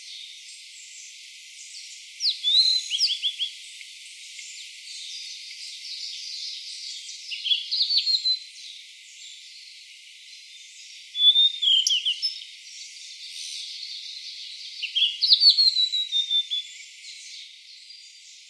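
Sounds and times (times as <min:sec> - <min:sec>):
tledekan laut calling: 0:02.2 - 0:03.8, 0:04.4 - 0:08.4, 0:11.2 - 0:12.8, 0:14.8 - 0:17.3.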